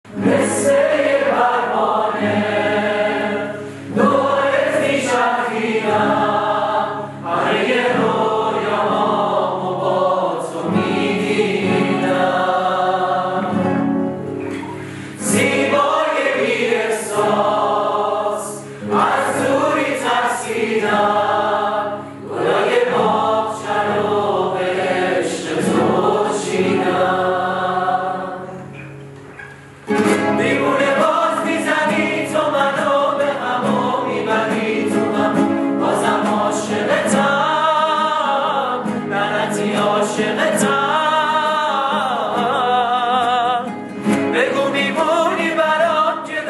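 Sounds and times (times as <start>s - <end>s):
guitar: 0.0s - 46.4s.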